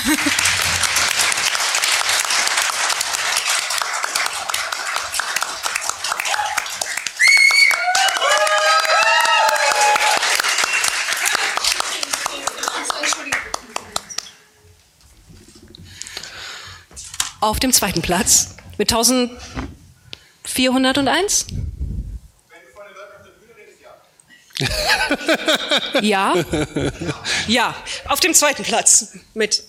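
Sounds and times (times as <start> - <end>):
laughter: 0.0 - 0.6, 24.6 - 27.6
audience applause: 0.0 - 14.3
speech: 17.4 - 19.6, 20.6 - 21.6, 25.3 - 29.6.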